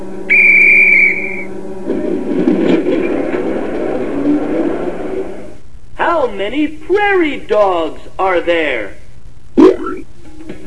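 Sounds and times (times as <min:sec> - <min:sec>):
high-pitched train whistle blast: 0:00.3 - 0:01.6
moving train rumbling and clattering: 0:01.7 - 0:05.6
speech: 0:06.3 - 0:09.0.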